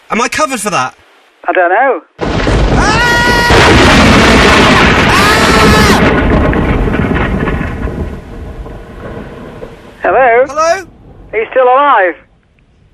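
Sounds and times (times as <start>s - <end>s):
speech: 0.1s - 3.0s, 10.0s - 12.2s
lightning strike thunder crash: 2.2s - 11.4s.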